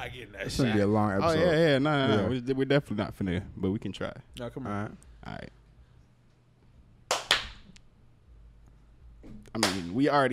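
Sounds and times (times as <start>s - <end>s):
speech: 0.0s - 5.6s, 9.3s - 10.3s
several people clapping hands out of sync: 7.1s - 7.8s, 9.5s - 10.0s.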